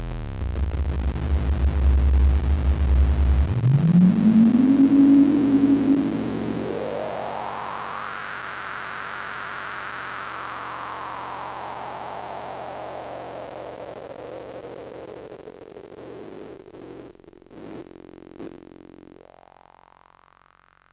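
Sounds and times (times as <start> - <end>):
Korg MS20 analog synthesizer patch bay sounds: 0.0 - 8.2.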